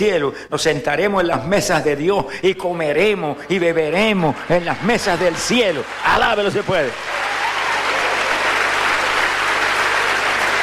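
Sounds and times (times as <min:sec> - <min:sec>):
speech: 0:00.0 - 0:07.3
audience applauding: 0:03.6 - 0:10.6.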